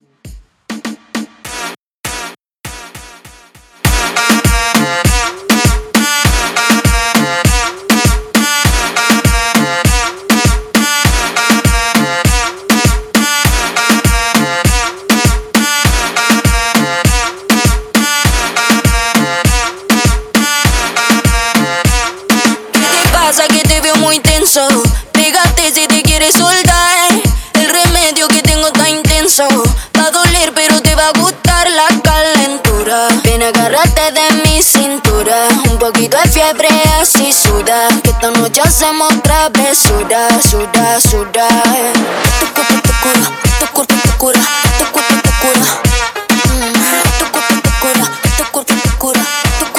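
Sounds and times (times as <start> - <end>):
moombahton mixshow at 100 BPM: 0.0 - 49.7.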